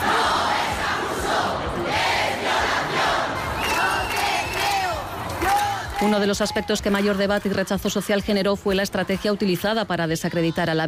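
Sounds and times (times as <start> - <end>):
protest crowd shouting in unison: 0.0 - 5.8
speech: 6.0 - 10.8.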